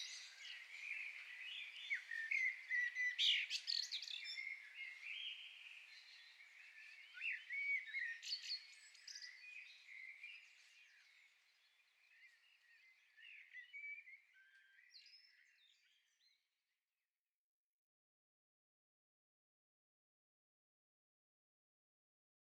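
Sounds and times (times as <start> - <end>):
common blackbird singing: 0.0 - 16.4.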